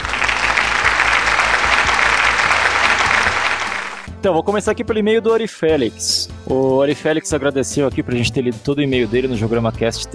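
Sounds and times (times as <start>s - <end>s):
applause sound effect: 0.0s - 4.1s
speech: 4.2s - 10.1s.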